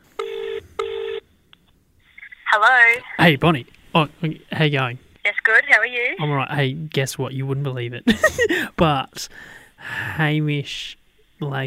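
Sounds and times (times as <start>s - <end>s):
electronic phone ringing tones: 0.2s - 1.2s
speech: 2.6s - 11.6s.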